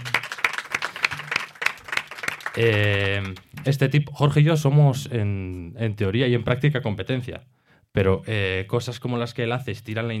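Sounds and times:
audience applause: 0:00.0 - 0:03.7
speech: 0:02.6 - 0:10.1.

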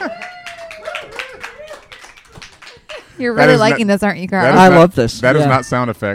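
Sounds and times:
live studio audience clapping: 0:00.0 - 0:03.6
speech: 0:03.2 - 0:06.1.

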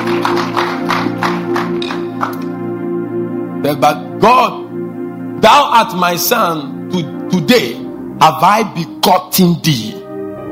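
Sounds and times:
audience clapping in a steady rhythm: 0:00.0 - 0:02.8
sustained keyboard chord: 0:00.0 - 0:10.4
speech: 0:03.6 - 0:04.6, 0:05.4 - 0:10.0.

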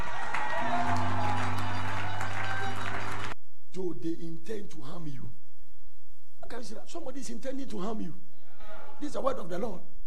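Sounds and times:
audience clapping: 0:00.0 - 0:03.4
low musical drone: 0:00.6 - 0:03.4
speech: 0:03.8 - 0:05.4, 0:06.5 - 0:08.3, 0:09.0 - 0:09.9.

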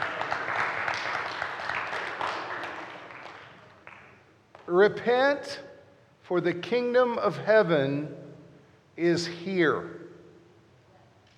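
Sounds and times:
awkward audience applause: 0:00.0 - 0:04.1
speech: 0:04.7 - 0:05.7, 0:06.3 - 0:08.2, 0:09.0 - 0:10.0.

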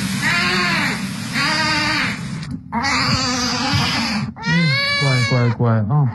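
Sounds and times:
sick tiger cub crying: 0:00.2 - 0:06.1.

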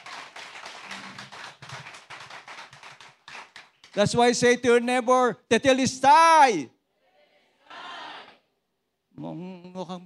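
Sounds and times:
audience clapping: 0:00.0 - 0:04.4
speech: 0:04.0 - 0:06.8, 0:09.3 - 0:10.0.

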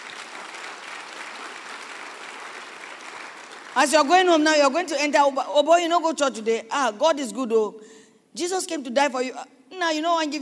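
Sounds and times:
audience clapping hands: 0:00.0 - 0:04.3
speech: 0:03.8 - 0:10.4.

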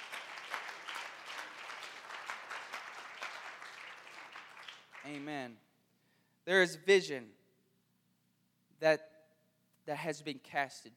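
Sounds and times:
audience hand clapping: 0:00.0 - 0:05.5
speech: 0:05.0 - 0:05.7, 0:06.4 - 0:07.4, 0:08.8 - 0:09.1, 0:09.9 - 0:10.9.

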